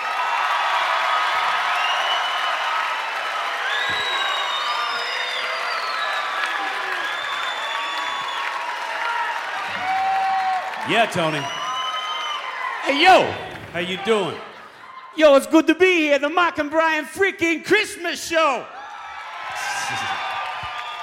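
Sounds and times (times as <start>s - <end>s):
audience applause welcoming a performer at a live Christmas radio show: 0.0s - 14.6s, 19.2s - 21.0s
audience cheers and whoops at a live Christmas radio show: 0.0s - 15.2s, 18.7s - 21.0s
speech: 10.9s - 11.6s, 12.8s - 14.5s, 15.2s - 18.8s.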